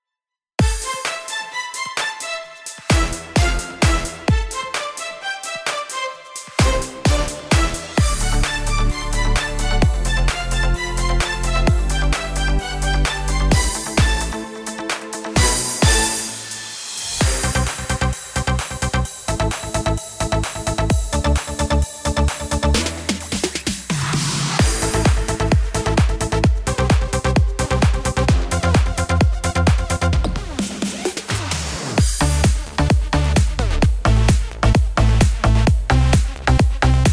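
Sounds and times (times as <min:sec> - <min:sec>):
electronic dance music: 0:00.6 - 0:37.1.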